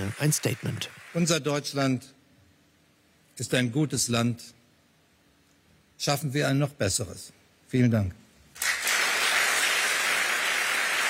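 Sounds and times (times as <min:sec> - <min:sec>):
large crowd applause in a standing ovation: 0:00.0 - 0:01.4, 0:08.6 - 0:11.0
speech: 0:00.0 - 0:02.2, 0:03.4 - 0:04.6, 0:06.0 - 0:08.2.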